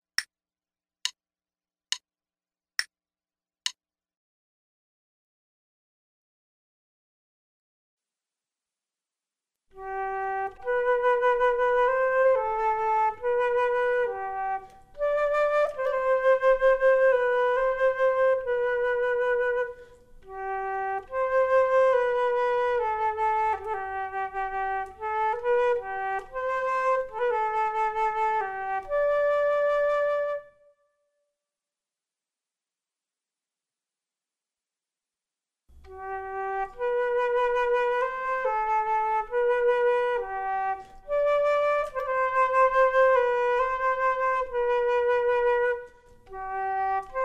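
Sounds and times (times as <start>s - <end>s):
flute duet: 9.7s - 30.9s, 35.8s - 47.2s.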